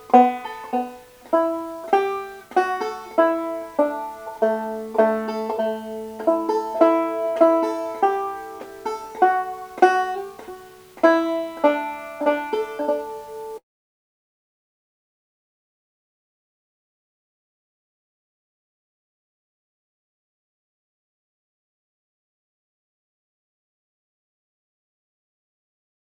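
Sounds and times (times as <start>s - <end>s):
banjo tune in D: 0.0s - 13.6s.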